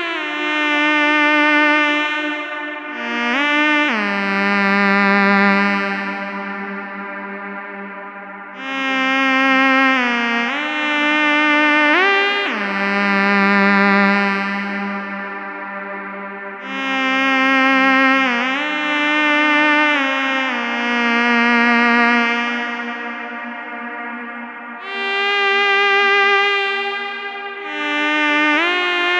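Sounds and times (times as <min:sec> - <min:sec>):
FM synthesizer lead with tape echo and reverb: 0:00.0 - 0:29.1.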